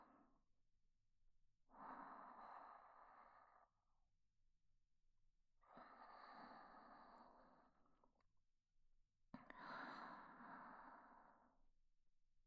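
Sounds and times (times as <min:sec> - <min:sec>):
sleeping breaths on the right channel: 0:01.7 - 0:03.7, 0:05.6 - 0:07.9, 0:09.4 - 0:11.6.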